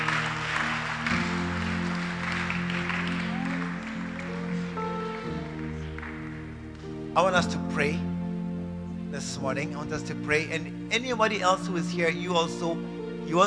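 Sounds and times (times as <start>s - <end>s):
audience clapping: 0.0s - 7.4s
speech: 7.2s - 8.1s, 9.1s - 13.4s.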